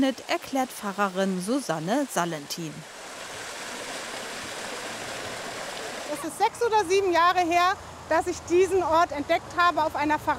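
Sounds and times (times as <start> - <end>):
speech: 0.0 - 3.0, 6.2 - 10.3
flowing water of the Erft river, tributary of the Rhine: 0.1 - 8.1.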